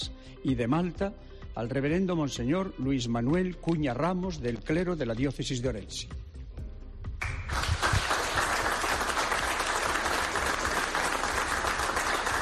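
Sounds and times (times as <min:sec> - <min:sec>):
speech: 0:00.0 - 0:06.2
audience applause in the diocese of Ourense: 0:07.2 - 0:12.4.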